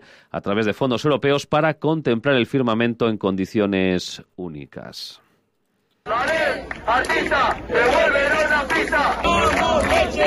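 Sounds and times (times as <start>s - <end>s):
speech: 0.1s - 5.2s, 6.0s - 10.2s
about 150 athletes chanting and shouting in protest at Balaídos athletics track in Vigo: 6.0s - 10.2s.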